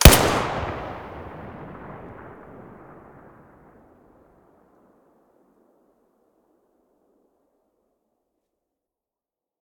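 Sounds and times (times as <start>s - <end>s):
TT-33 pistol muzzle blast: 0.0s - 3.1s.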